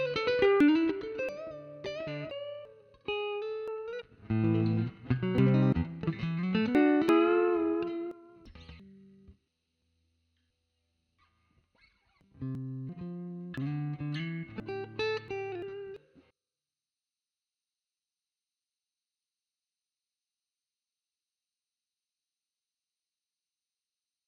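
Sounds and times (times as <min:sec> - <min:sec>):
electric guitar: 0:00.0 - 0:09.3, 0:11.8 - 0:16.1.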